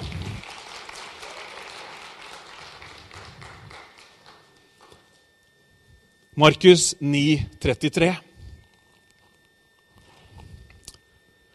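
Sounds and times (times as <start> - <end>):
applause: 0.0 - 5.0
speech: 6.4 - 8.3.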